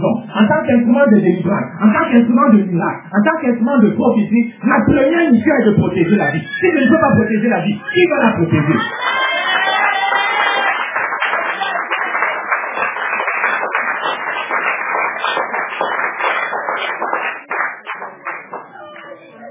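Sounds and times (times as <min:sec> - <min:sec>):
speech: 0:00.0 - 0:09.3
audience clapping timidly: 0:08.8 - 0:19.3.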